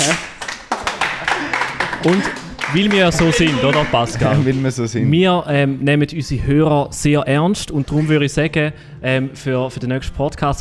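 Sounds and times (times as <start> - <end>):
applause: 0.0 - 4.2
laughter: 1.1 - 4.8
speech: 2.0 - 10.6.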